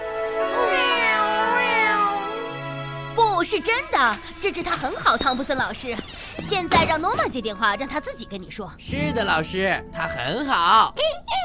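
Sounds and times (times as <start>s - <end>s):
cat meowing: 0.6s - 2.6s
speech: 3.4s - 11.3s.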